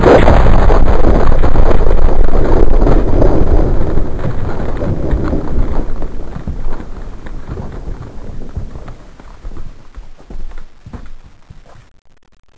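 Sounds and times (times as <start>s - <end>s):
explosion: 0.0s - 9.8s.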